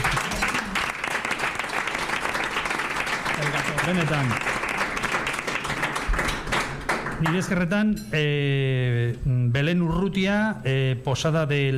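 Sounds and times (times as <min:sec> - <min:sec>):
audience applause: 0:00.0 - 0:07.5
speech: 0:03.9 - 0:04.6, 0:07.2 - 0:11.7.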